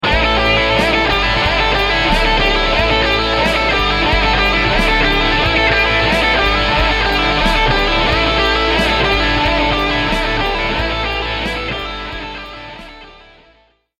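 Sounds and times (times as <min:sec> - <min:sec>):
repetition lick: 0:00.0 - 0:13.4.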